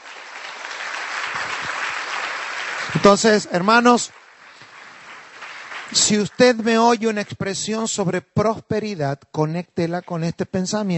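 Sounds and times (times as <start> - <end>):
audience applauding: 0.0 - 7.2
speech: 3.0 - 4.2, 6.0 - 10.9.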